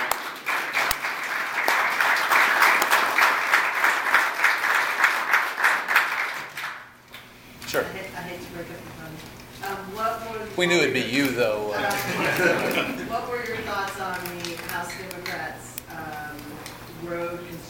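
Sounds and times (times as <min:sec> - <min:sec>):
audience applause: 0:00.0 - 0:06.9
speech: 0:10.6 - 0:15.6
laughter: 0:11.7 - 0:13.8.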